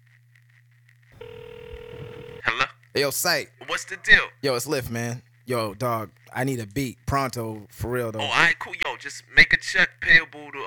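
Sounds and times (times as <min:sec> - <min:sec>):
telephone ringing while waiting for answer: 0:01.2 - 0:02.5
speech: 0:03.0 - 0:10.6.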